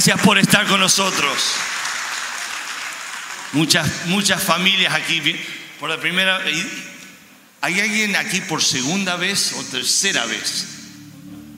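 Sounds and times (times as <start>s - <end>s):
speech: 0.0s - 1.8s, 3.5s - 6.9s, 7.6s - 10.8s
crowd applauding: 0.0s - 4.1s.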